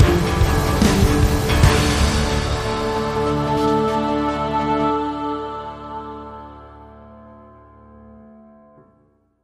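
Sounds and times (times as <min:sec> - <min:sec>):
dark orchestral stinger: 0:00.0 - 0:07.2.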